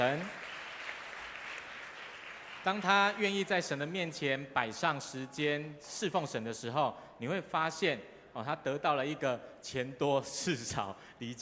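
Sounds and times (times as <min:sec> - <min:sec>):
speech: 0:00.0 - 0:00.4, 0:02.6 - 0:11.4
audience clapping: 0:00.0 - 0:03.8.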